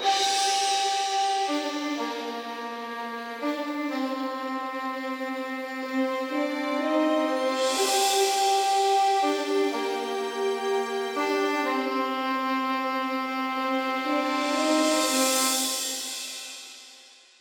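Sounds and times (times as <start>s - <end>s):
jungle chase synth pad: 0.0s - 16.6s.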